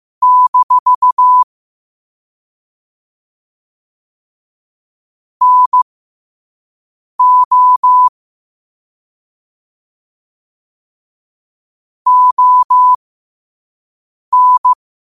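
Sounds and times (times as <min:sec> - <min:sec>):
morse code at 5 wpm: 0:00.2 - 0:01.4, 0:05.4 - 0:05.8, 0:07.2 - 0:08.1, 0:12.1 - 0:13.0, 0:14.3 - 0:14.8.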